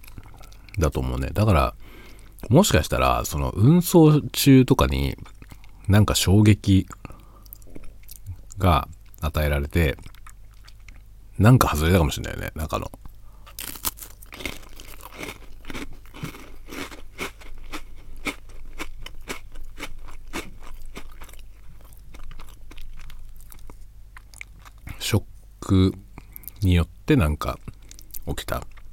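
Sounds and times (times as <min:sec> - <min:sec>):
speech: 0:00.8 - 0:07.1, 0:08.6 - 0:10.1, 0:11.4 - 0:13.1, 0:25.1 - 0:26.0, 0:26.6 - 0:28.7
crunchy biscuit snack being eaten: 0:13.4 - 0:25.0.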